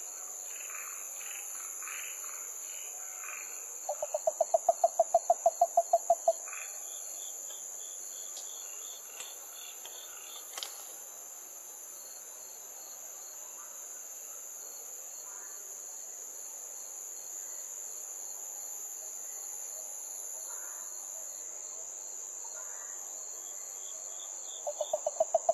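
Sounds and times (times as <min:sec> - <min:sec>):
Yaeyama harabuti gaeru frog: 0:03.2 - 0:06.8, 0:24.6 - 0:25.5.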